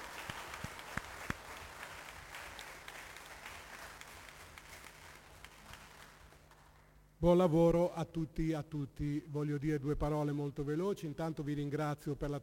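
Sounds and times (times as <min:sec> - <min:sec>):
crowd applauding: 0:00.0 - 0:06.9
speech: 0:07.2 - 0:12.4.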